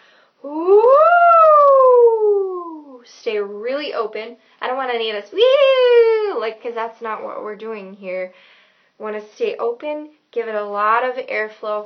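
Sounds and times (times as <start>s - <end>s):
voice imitating a siren or ghostly wail: 0.4s - 3.0s
speech: 3.4s - 11.8s.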